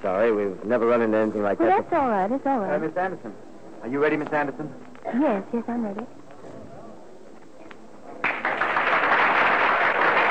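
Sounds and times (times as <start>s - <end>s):
speech: 0.0s - 6.2s
audience applause: 8.2s - 10.3s.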